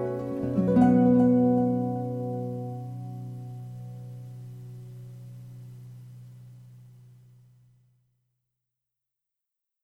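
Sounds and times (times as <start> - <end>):
guitar cover: 0.0 - 6.3.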